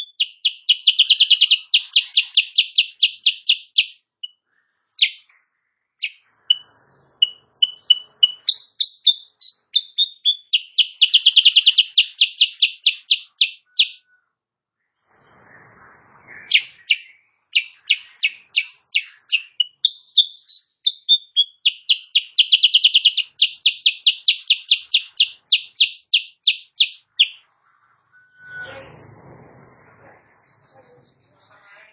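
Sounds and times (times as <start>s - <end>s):
sooty-headed bulbul chirping: 0.0s - 4.4s, 5.0s - 5.3s, 6.0s - 14.1s, 16.3s - 27.4s.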